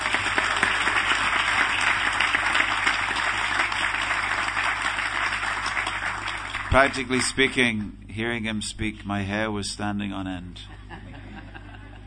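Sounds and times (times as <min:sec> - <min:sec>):
audience round of applause: 0:00.0 - 0:07.7
speech: 0:06.8 - 0:10.8
laughter: 0:10.7 - 0:12.0.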